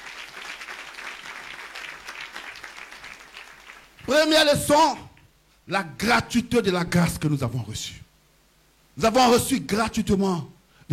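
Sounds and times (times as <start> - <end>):
church congregation applauding the Lord: 0.0 - 4.1
speech: 4.1 - 5.0, 5.7 - 8.0, 9.0 - 10.9.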